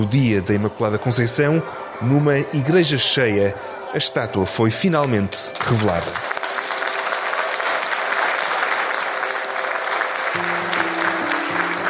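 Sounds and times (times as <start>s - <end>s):
speech: 0.0s - 6.3s
church crowd applause: 5.6s - 11.8s.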